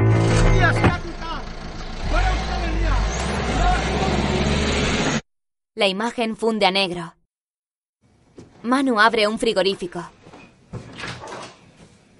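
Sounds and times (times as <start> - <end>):
police car engine rumble: 0.1 - 5.2
speech: 5.8 - 7.2, 8.6 - 10.1.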